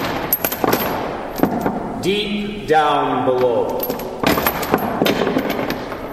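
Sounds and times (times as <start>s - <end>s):
clanking of heavy chain being dragged: 0.0s - 2.0s, 3.3s - 6.1s
speech: 2.0s - 4.0s.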